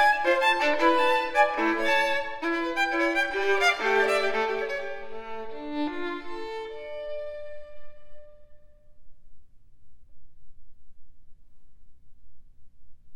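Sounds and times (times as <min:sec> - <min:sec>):
baroque dance piece: 0:00.0 - 0:06.6.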